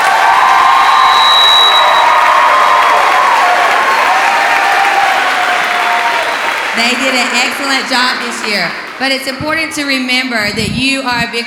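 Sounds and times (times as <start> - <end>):
crowd cheering and whooping: 0.0 - 8.9
crowd clapping: 0.0 - 10.1
speech: 6.8 - 11.4.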